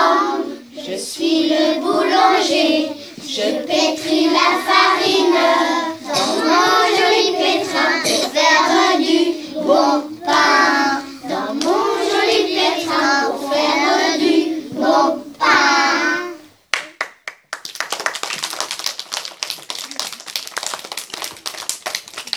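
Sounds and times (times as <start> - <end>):
vocals: 0.0 - 16.6.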